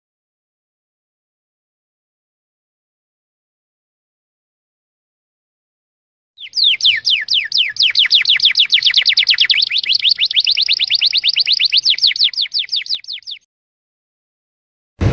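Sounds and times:
domestic canary song with sustained rolling trill and whistled phrases: 6.4 - 13.5.

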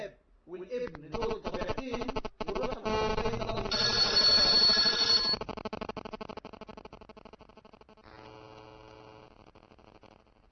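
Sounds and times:
speech: 0.5 - 2.0
telephone ringing with an incoming call: 1.1 - 5.5.

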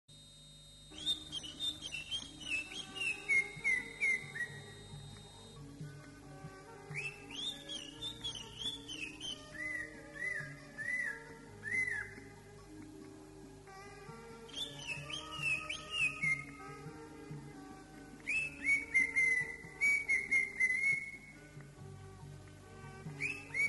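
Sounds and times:
greater green leafbird song: 0.9 - 5.6, 6.9 - 12.3, 14.5 - 16.9, 18.2 - 21.4, 23.0 - 23.6.

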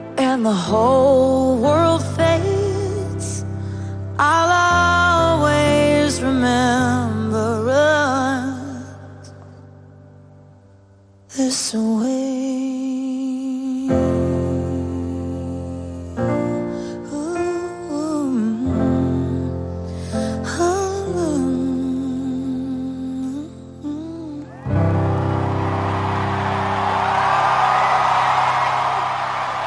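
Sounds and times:
voice singing a sustained wavering melody over accompaniment: 0.0 - 9.9, 11.3 - 25.5
speech: 0.4 - 2.5, 11.4 - 12.4
loud dense enthusiastic applause: 24.6 - 29.6.

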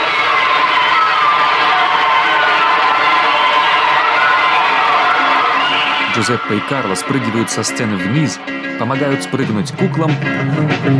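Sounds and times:
children clapping and cheering: 0.0 - 8.3
speech: 6.2 - 10.9.

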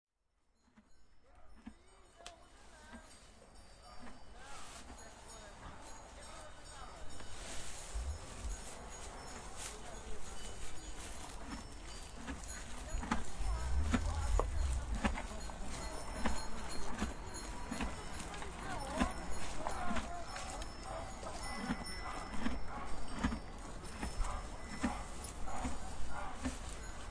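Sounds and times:
horse hooves clopping at a walk: 7.1 - 27.0.

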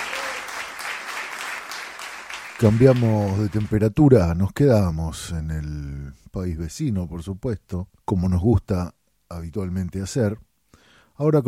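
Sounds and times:
audience applause for a performer: 0.0 - 3.8
speech: 2.6 - 10.5, 11.2 - 11.4.

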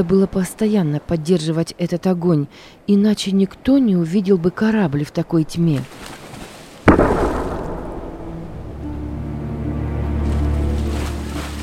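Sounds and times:
speech: 0.0 - 6.2
stormy sea waves at night: 0.0 - 11.6
cannon shot: 6.9 - 8.9.

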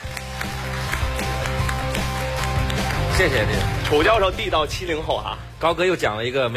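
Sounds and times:
applause welcoming a professor onto a stage: 0.0 - 4.3
steady tonal music: 1.1 - 6.5
speech: 3.2 - 6.5.

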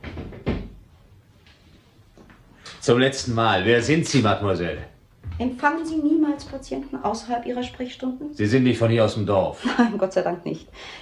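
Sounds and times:
waiting room door swinging shut: 0.0 - 0.8
speech: 2.8 - 11.0.

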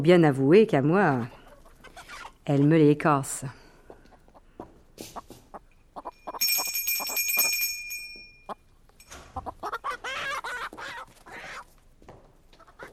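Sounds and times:
speech: 0.0 - 1.4, 2.4 - 3.6
chickens clucking and squawking: 1.0 - 2.4, 3.8 - 6.4, 9.3 - 11.8, 12.6 - 12.9
service bell rung by the lady of the house to call her maid: 6.1 - 9.2.

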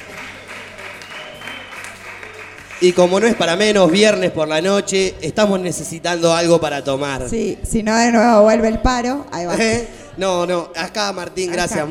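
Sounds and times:
live audience applause in an auditorium: 0.0 - 4.3
speech: 2.8 - 11.8.

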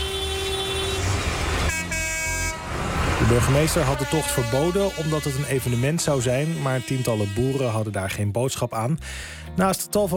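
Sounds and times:
tractor engines rumbling: 0.0 - 7.4
procession of tractors honking horns: 0.0 - 8.2
speech: 3.2 - 10.1.

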